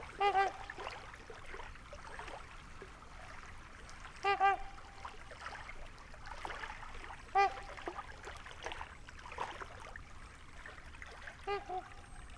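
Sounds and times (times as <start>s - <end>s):
Trumpeter swan trumpeting in Wisconsin: 0.2s - 0.8s, 4.2s - 4.9s, 11.4s - 12.1s.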